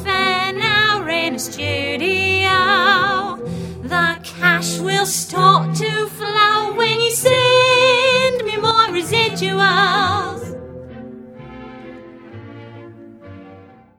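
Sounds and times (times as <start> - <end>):
women singing: 0.0 - 10.6.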